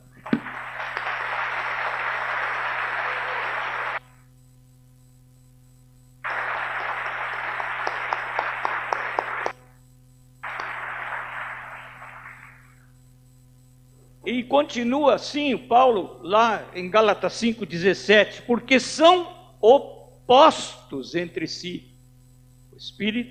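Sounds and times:
audience applauding: 0.2 - 4.0, 6.2 - 9.6, 10.4 - 12.8
speech: 14.4 - 21.9, 22.8 - 23.2.

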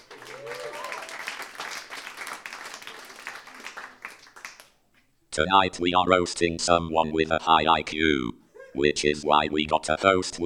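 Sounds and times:
audience applause: 0.0 - 4.7
speech: 5.4 - 10.4.

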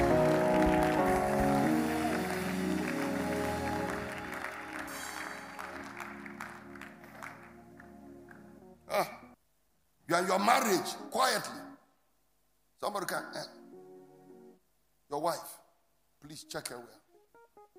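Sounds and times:
audience clapping hands: 0.0 - 8.7
speech: 9.0 - 9.2, 10.1 - 11.6, 12.8 - 13.6, 15.1 - 15.6, 16.2 - 17.0.

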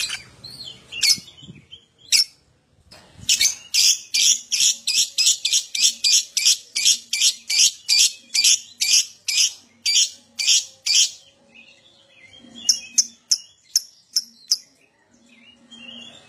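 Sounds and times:
lovebird chirping: 0.0 - 2.4, 3.3 - 11.3, 12.2 - 14.8.

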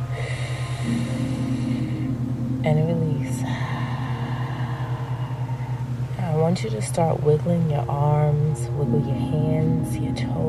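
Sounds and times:
deep breath drawn in through the nose: 0.0 - 2.3, 3.4 - 6.1
gentle meditation music: 0.0 - 10.4
speech: 2.6 - 3.6, 6.5 - 10.4.

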